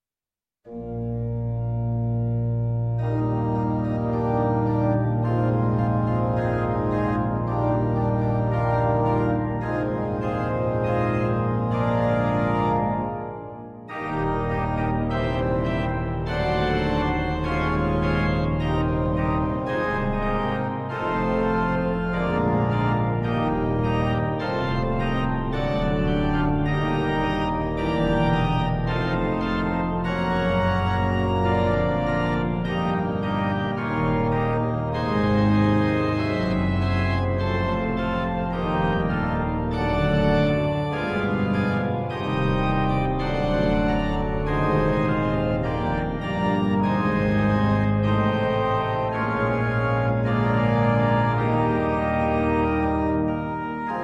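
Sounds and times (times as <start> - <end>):
hymn prelude: 0.7 - 54.0.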